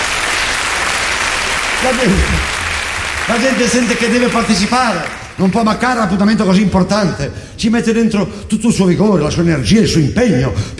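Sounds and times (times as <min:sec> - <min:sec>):
crowd cheering and applauding: 0:00.0 - 0:05.4
speech: 0:01.8 - 0:02.6, 0:03.3 - 0:10.7.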